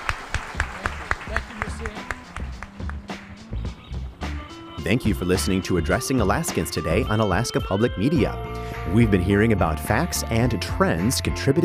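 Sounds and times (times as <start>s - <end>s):
audience applause: 0.0s - 3.4s
speech: 4.8s - 11.6s.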